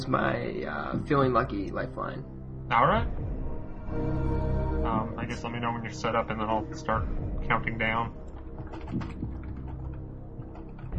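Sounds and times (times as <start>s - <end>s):
speech: 0.0s - 9.2s
typing on a computer keyboard: 8.3s - 10.9s.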